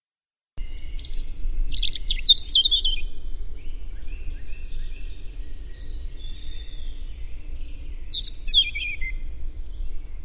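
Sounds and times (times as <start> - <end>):
European robin Erithacus rubecula singing sweet warbled phrases: 0.6 - 10.2.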